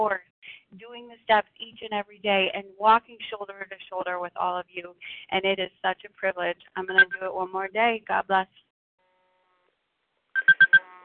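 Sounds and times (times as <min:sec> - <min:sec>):
speech: 0:00.0 - 0:00.3, 0:01.2 - 0:08.6
alarm beeping: 0:06.9 - 0:07.2, 0:10.4 - 0:11.0.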